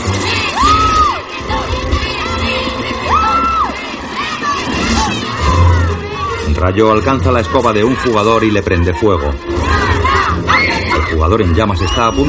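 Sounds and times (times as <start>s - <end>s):
crowd in the stands cheering a Quidditch match during a storm in a fantasy film: 0.0s - 6.6s, 9.7s - 12.2s
speech: 6.6s - 9.6s, 11.0s - 12.2s.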